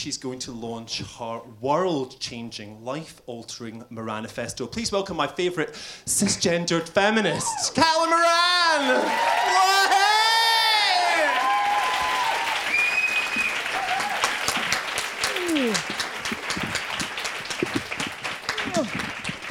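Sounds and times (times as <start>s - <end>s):
speech: 0.0s - 10.0s
scattered cheers and whoops: 8.5s - 14.5s, 15.2s - 16.0s
large audience applause: 8.8s - 19.4s.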